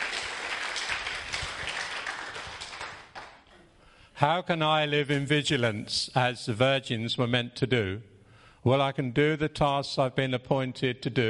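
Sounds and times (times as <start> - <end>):
audience applause: 0.0 - 3.4
speech: 4.2 - 11.2.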